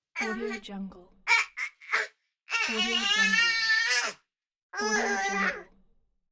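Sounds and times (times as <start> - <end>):
angry baby: 0.2 - 0.6, 1.3 - 4.2, 4.8 - 5.7.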